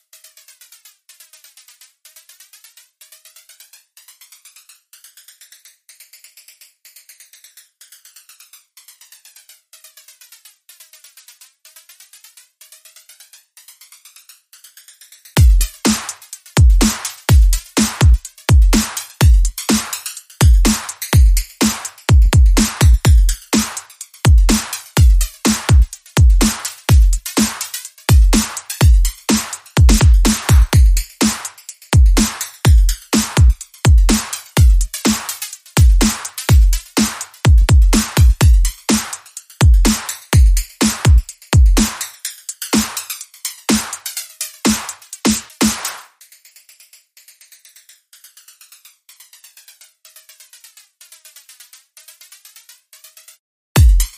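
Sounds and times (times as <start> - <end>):
drum beats: 15.4 - 46.0, 53.8 - 54.1.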